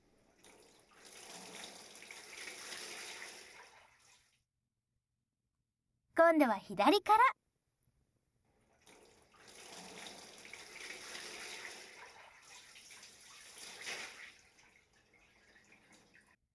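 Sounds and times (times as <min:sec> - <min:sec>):
hot water poured over a person's body before a bath: 0:00.4 - 0:04.4, 0:08.7 - 0:16.4
speech: 0:06.3 - 0:07.4.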